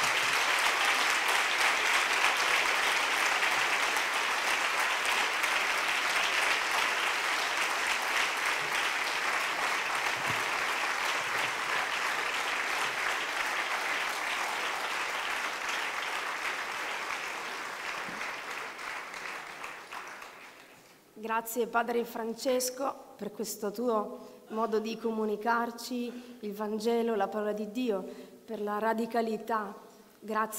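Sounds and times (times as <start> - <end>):
audience applause: 0.0 - 20.9
speech: 21.3 - 30.5.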